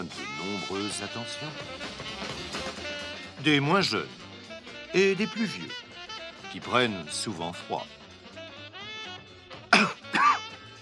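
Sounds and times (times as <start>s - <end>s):
speech: 0.0s - 2.1s, 3.4s - 4.2s, 4.9s - 5.8s, 6.5s - 8.0s
engine coughing and sputtering, failing to start: 9.6s - 10.7s.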